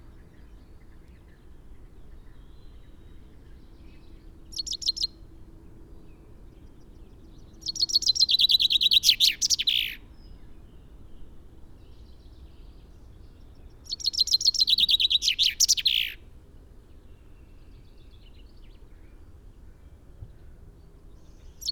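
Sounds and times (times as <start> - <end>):
Common chaffinch Fringilla coelebs singing a fast run of chips ending in a flourish: 4.0 - 5.2, 7.0 - 10.1, 13.5 - 16.2, 21.4 - 21.7.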